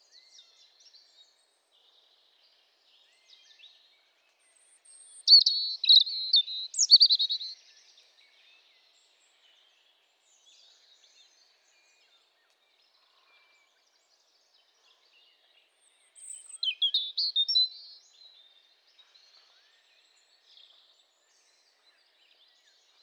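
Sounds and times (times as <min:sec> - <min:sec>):
European robin song: 0:05.3 - 0:07.5.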